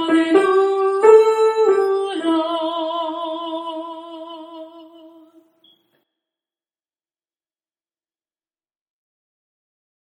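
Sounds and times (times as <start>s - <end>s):
soprano singing an alleluia in six-four time: 0.0s - 5.5s.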